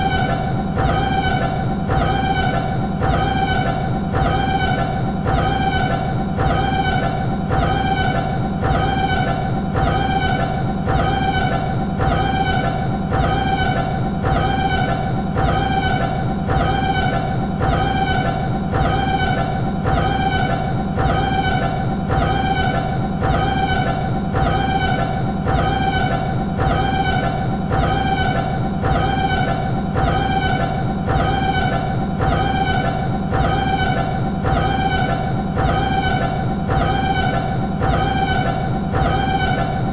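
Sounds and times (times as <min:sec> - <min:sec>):
siren alarm: 0:00.0 - 0:39.9.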